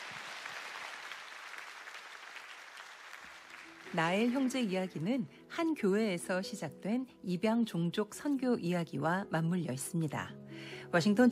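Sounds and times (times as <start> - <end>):
audience applause: 0.0 - 4.6
speech: 3.9 - 11.2.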